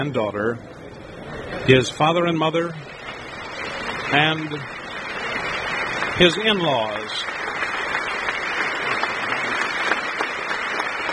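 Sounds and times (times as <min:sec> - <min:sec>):
speech: 0:00.0 - 0:00.8, 0:01.5 - 0:03.0, 0:04.1 - 0:04.8, 0:06.2 - 0:07.4
applause for arrival of Mrs. Glenn: 0:02.8 - 0:11.1.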